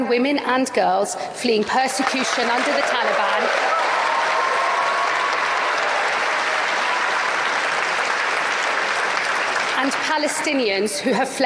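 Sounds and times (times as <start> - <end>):
speech: 0.1 - 3.8, 9.8 - 11.4
audience applause after a political speech: 1.6 - 10.5.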